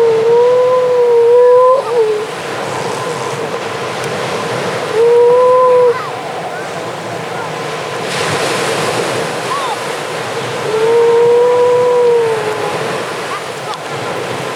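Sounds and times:
grey seals moaning, wailing and squabbling: 0:00.0 - 0:14.5.

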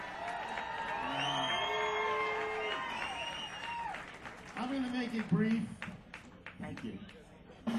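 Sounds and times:
studio audience applause and cheering: 0:00.0 - 0:07.0
whoops and excited voices: 0:00.1 - 0:04.1
speech: 0:05.1 - 0:06.0.

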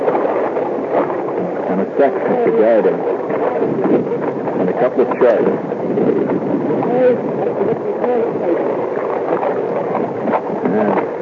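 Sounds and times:
water rushing and gurgling at the waterline of a sailing boat under sail near Dominica: 0:00.0 - 0:11.1
speech: 0:01.8 - 0:11.1.

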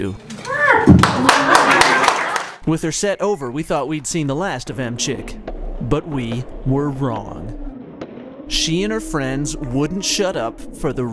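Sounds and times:
speech: 0:00.0 - 0:01.4, 0:02.7 - 0:07.5, 0:08.5 - 0:11.1
audience applauding: 0:01.0 - 0:02.6.

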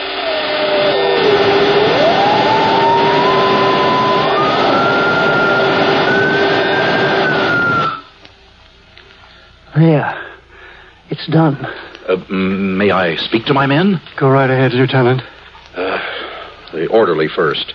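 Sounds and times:
infernal machine crackling and sparking: 0:00.0 - 0:09.1
speech: 0:09.8 - 0:10.2, 0:11.1 - 0:15.3, 0:16.7 - 0:17.7.

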